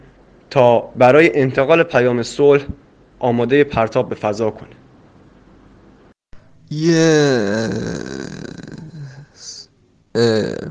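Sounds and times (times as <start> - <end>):
speech: 0.5 - 4.8, 6.7 - 8.2, 10.2 - 10.6
person who dozed off snoring: 6.6 - 10.6.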